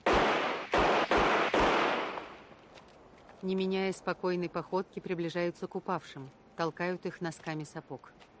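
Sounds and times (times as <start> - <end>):
pistol gunshots in a film: 0.0 - 2.4
speech: 3.4 - 8.3.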